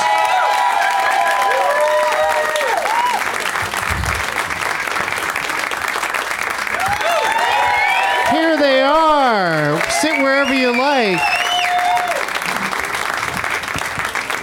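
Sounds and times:
whistles and scattered cheers: 0.0 - 3.4, 6.7 - 8.6, 9.8 - 12.4
audience applauding: 0.0 - 14.4
speech: 10.2 - 11.3.

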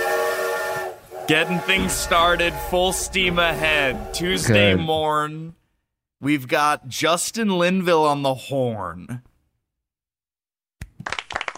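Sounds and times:
speech: 1.3 - 5.6, 6.2 - 9.3
hand clapping: 10.8 - 11.5.

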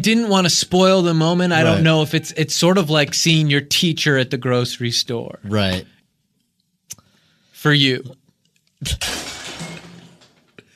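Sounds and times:
speech: 0.0 - 5.9, 7.6 - 8.2, 8.8 - 9.3
ceramic plate shattering: 8.9 - 10.6.

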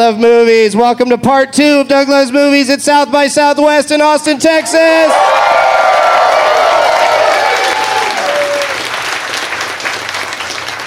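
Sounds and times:
speech: 0.0 - 5.6
cheers and whoops: 4.7 - 8.9
live audience applause: 5.1 - 10.8.

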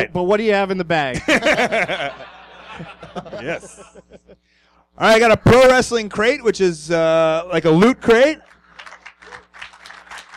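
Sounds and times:
speech: 0.0 - 4.4, 5.0 - 8.5
laughter: 1.1 - 4.4
audience applause: 8.4 - 10.3.

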